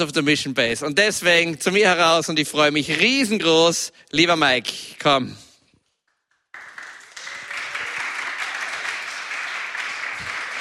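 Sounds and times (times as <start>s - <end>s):
speech: 0.0s - 5.4s
audience applause: 6.5s - 10.5s.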